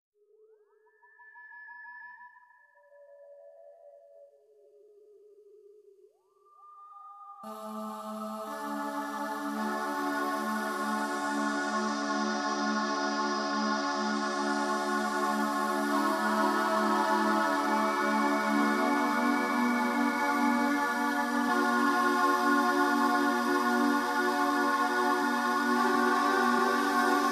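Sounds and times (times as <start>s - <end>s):
spa music tuned to 432 Hz: 6.2s - 27.3s.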